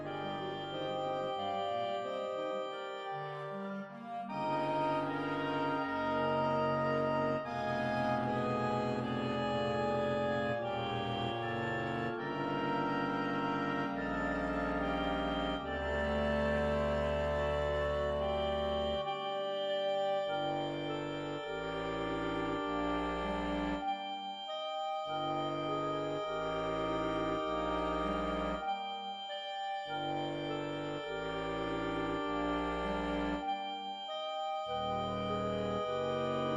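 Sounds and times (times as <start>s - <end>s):
clarinet choir playing chorale: 0.0s - 36.5s.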